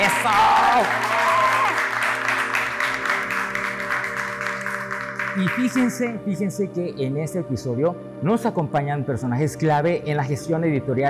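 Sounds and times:
audience applause: 0:00.0 - 0:06.1
sustained musical tones: 0:00.0 - 0:11.0
speech: 0:00.1 - 0:01.2, 0:05.4 - 0:11.0.

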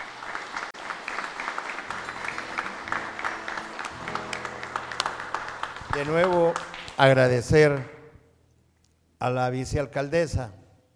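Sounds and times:
audience applause: 0:00.0 - 0:07.4
speech: 0:06.0 - 0:08.0, 0:09.2 - 0:10.6.

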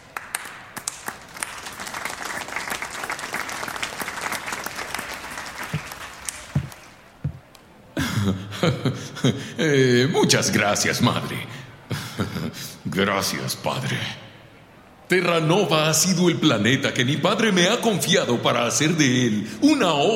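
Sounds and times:
audience applause: 0:00.0 - 0:07.0
speech: 0:08.3 - 0:11.6, 0:13.0 - 0:14.2, 0:15.1 - 0:20.1.

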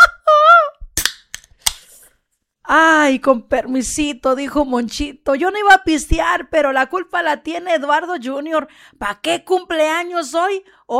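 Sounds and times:
beer bottle cap opening: 0:00.9 - 0:02.1
speech: 0:02.7 - 0:10.9.

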